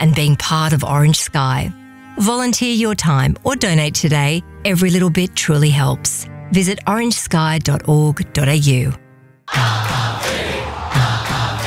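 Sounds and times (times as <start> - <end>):
speech: 0.0 - 10.0
roaring crowd in a radio advert: 9.5 - 11.6.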